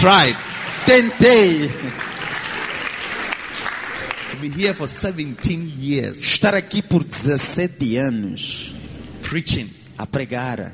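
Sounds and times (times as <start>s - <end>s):
speech: 0.0s - 2.0s, 4.4s - 10.7s
applause: 0.0s - 5.6s.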